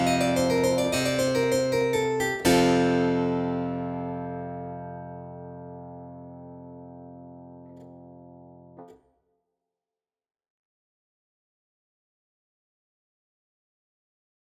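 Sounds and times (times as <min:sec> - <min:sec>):
virginal prelude: 0:00.0 - 0:07.9.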